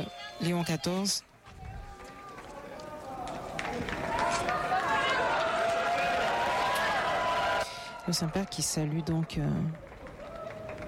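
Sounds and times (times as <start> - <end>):
speech: 0.0 - 1.3, 8.1 - 9.8
crowd cheering with joy: 1.6 - 9.0, 9.8 - 10.8.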